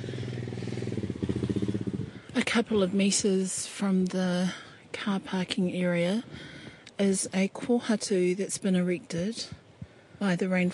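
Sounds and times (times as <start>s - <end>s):
quad bike arriving: 0.0s - 3.4s
speech: 2.4s - 9.6s, 10.2s - 10.7s.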